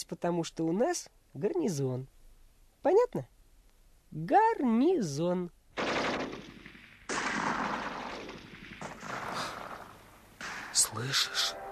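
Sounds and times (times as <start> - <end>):
speech: 0.0 - 2.2, 2.8 - 3.4, 4.1 - 5.9, 10.8 - 11.6
gunfire at a station: 5.8 - 11.1.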